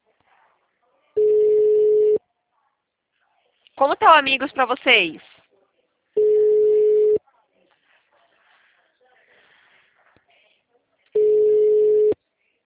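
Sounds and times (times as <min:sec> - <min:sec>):
telephone ringback tone from an unanswered call: 0:01.2 - 0:02.2, 0:06.2 - 0:07.2, 0:11.2 - 0:12.2
speech: 0:03.8 - 0:05.3.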